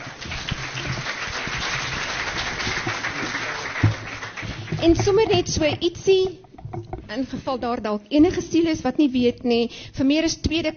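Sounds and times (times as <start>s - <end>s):
audience clapping: 0.0s - 5.7s
speech: 4.8s - 10.7s.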